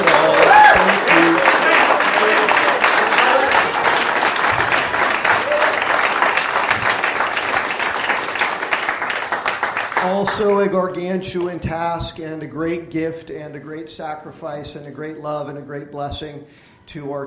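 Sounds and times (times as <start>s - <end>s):
audience applause: 0.0s - 10.5s
speech: 10.4s - 17.2s.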